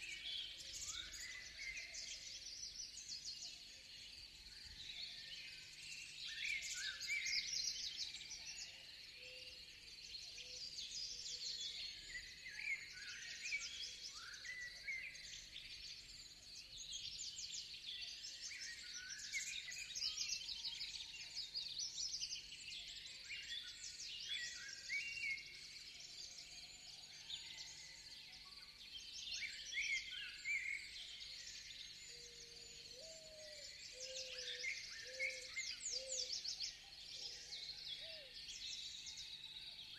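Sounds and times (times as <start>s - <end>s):
birds in a forest: 0.0s - 39.9s.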